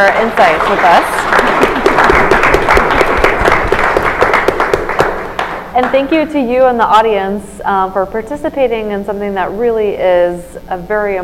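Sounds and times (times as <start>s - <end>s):
speech: 0.0s - 1.5s, 5.8s - 11.2s
audience applause thanking the panelists: 0.0s - 5.7s.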